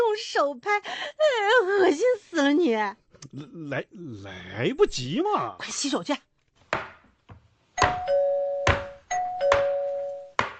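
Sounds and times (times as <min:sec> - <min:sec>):
speech: 0:00.2 - 0:06.9
doorbell ringing: 0:07.8 - 0:10.4.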